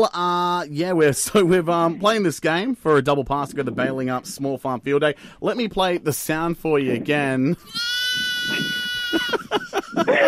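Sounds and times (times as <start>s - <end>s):
speech: 0.0s - 10.2s
laughter: 7.5s - 10.2s
baby lamb bleating: 7.7s - 9.3s.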